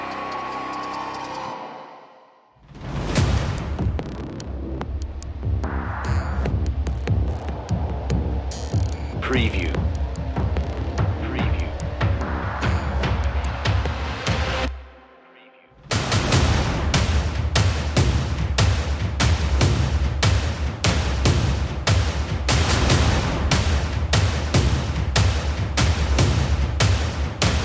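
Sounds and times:
drums: 2.7 - 14.8, 15.8 - 27.6.

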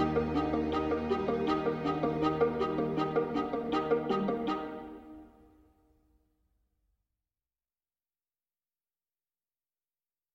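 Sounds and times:
strings: 0.0 - 5.7.

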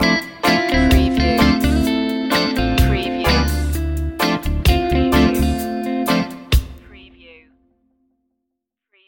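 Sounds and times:
reggae love stinger: 0.0 - 6.4.

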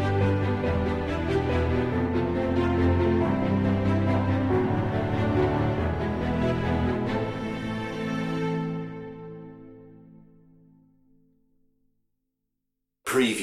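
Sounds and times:
orchestral music without percussion: 0.0 - 10.6.

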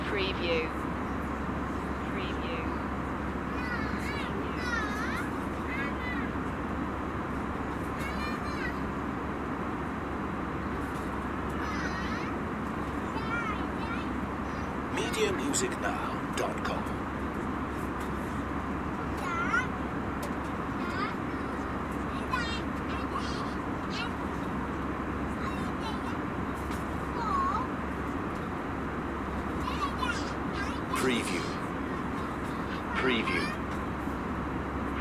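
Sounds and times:
airplane ambience: 0.0 - 34.9.

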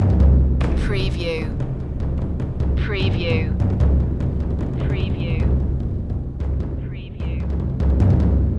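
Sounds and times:
taiko drum triads: 0.0 - 8.5.

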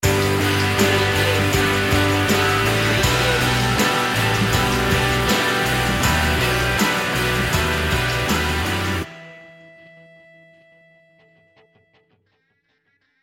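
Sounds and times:
music sting: 0.0 - 10.0.

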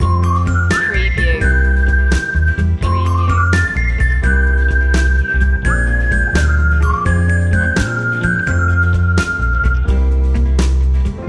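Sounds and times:
whistling loop: 0.0 - 10.9.

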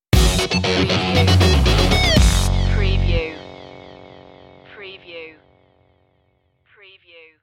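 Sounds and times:
funk stinger music: 0.1 - 4.6.

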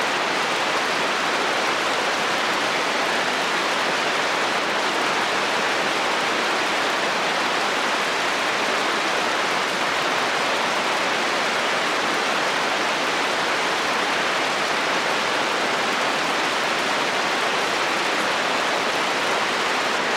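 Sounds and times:
steady rain on a roof: 0.0 - 20.1.

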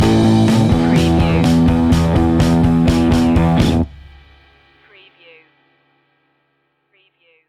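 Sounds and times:
rock music stinger: 0.0 - 4.4.

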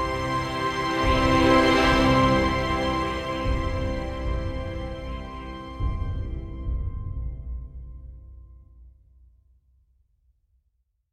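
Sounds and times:
magical forest music: 0.0 - 8.0.

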